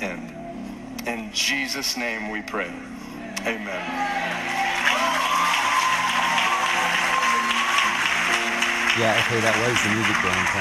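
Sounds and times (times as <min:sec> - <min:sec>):
speech: 0:01.3 - 0:04.7, 0:09.0 - 0:10.5
many hands clapping in a church: 0:04.4 - 0:10.5.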